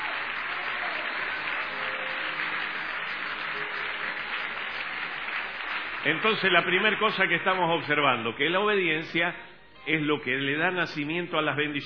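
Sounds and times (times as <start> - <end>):
audience clapping hands above heads: 0.0 - 8.4
speech: 6.0 - 11.8.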